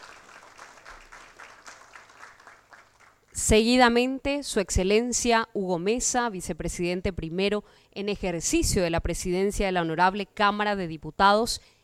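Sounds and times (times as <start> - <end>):
audience applause for an honoree: 0.0 - 3.3
speech: 3.4 - 11.8.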